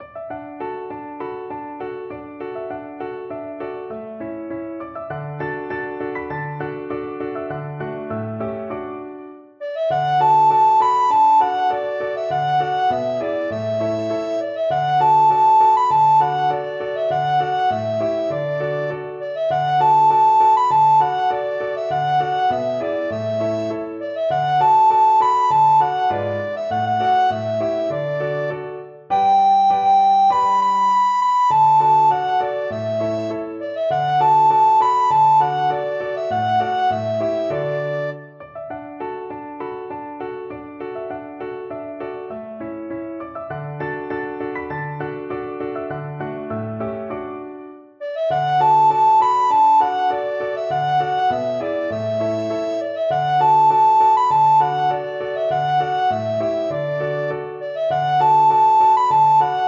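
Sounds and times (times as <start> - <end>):
folk tune played on a recorder: 9.6 - 38.4, 48.0 - 59.6.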